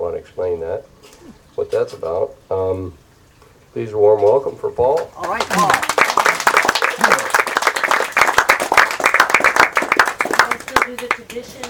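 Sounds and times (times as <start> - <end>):
speech: 0.2 - 3.0, 3.7 - 5.8, 10.9 - 11.6
audience clapping: 5.2 - 11.6.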